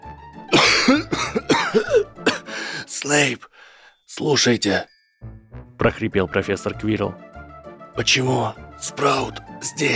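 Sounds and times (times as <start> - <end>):
loud ragged coughing from a professor lying down: 0.5 - 2.6
speech: 3.0 - 3.5, 4.2 - 7.3, 8.0 - 9.9.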